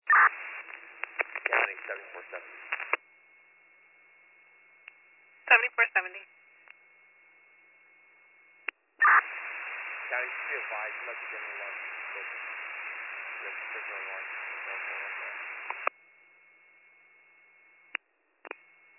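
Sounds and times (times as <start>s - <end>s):
radio hiss: 0.1s - 3.0s, 9.0s - 15.9s
faint steady tone: 0.2s - 18.9s
weak garbled voice from a portable two-way radio: 1.2s - 2.8s, 10.1s - 12.6s, 13.4s - 15.5s
speech: 1.9s - 2.9s, 6.0s - 6.4s, 10.5s - 12.4s, 13.5s - 14.9s.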